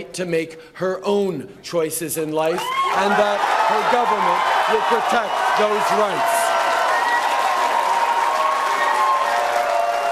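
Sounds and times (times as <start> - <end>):
speech: 0.0 - 6.4
audience applause at a political speech: 2.6 - 10.1.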